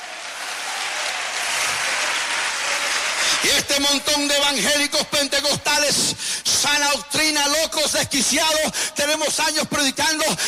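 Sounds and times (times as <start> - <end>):
crowd applause: 0.0 - 4.0
speech: 3.4 - 10.4.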